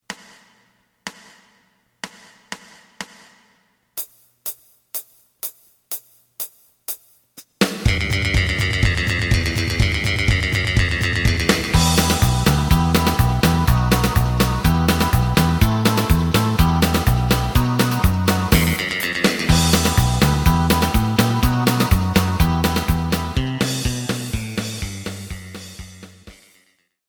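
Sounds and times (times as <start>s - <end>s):
lead melody: 7.9s - 25.9s.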